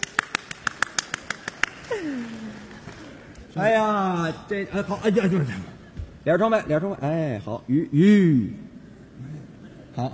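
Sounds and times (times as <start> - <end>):
rhythmic clapping at a Beijing comedy stage show: 0.0 - 3.5
speech: 1.9 - 2.6, 3.6 - 8.6.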